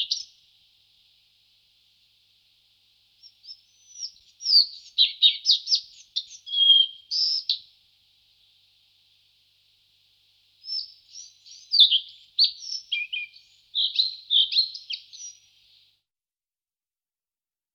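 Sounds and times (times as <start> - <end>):
collared flycatcher singing: 0.0 - 0.4, 3.2 - 7.8, 10.6 - 15.8.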